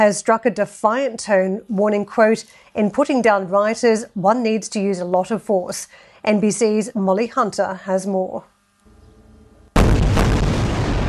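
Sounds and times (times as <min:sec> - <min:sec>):
speech: 0:00.0 - 0:08.5
Israeli Air Force airstrike blasts and rumbling over the Gaza Strip: 0:09.7 - 0:11.0.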